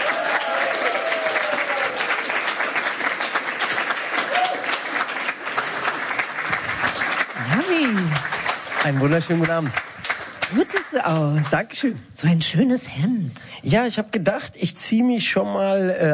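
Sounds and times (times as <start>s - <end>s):
cheers and whoops: 0.0s - 2.3s, 4.2s - 4.8s
crowd applause: 0.0s - 11.4s
speech: 8.9s - 9.9s, 10.5s - 16.1s.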